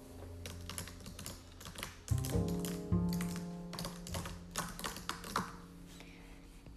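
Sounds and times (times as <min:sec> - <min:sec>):
fingers tapping on a computer keyboard: 0:00.4 - 0:05.6.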